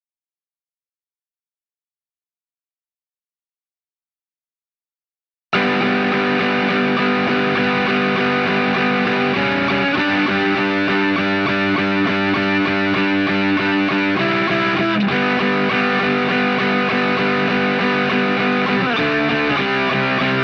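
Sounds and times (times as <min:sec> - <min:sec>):
guitar: 0:05.5 - 0:20.4.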